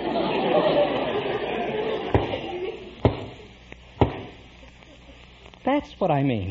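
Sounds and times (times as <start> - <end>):
laughter: 0.0 - 3.5, 4.4 - 5.3
knocking on a door: 3.0 - 3.3, 4.0 - 4.3
speech: 5.7 - 6.4.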